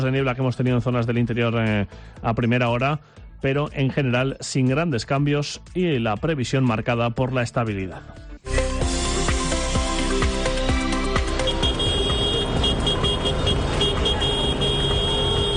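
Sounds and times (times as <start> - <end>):
speech: 0.0 - 8.6
rhythmic thumps: 8.5 - 14.2
tractor engines rumbling on a street: 10.4 - 15.5
tractor horns honking on a city street: 11.1 - 15.5.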